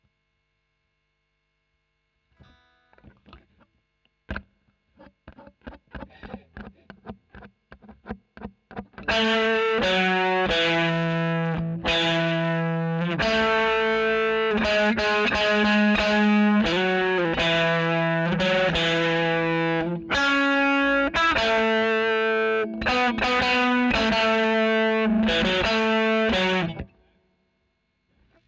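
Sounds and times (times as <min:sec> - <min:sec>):
overdriven electric guitar recorded with a Royer microphone: 0:04.3 - 0:27.1.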